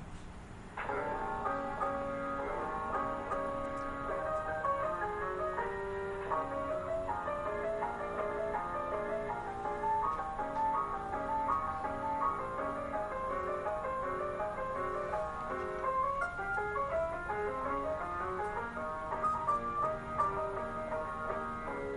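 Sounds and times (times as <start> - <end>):
player piano playing a ragtime tune: 0.8 - 21.9.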